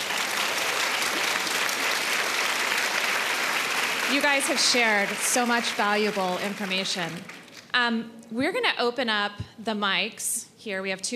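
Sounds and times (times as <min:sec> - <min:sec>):
audience applause: 0:00.0 - 0:07.6
speech: 0:04.1 - 0:11.1.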